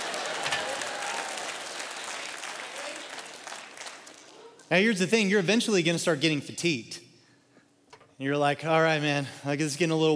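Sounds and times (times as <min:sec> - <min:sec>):
audience whooping and cheering: 0:00.0 - 0:04.3
speech: 0:04.7 - 0:07.0, 0:08.2 - 0:10.1.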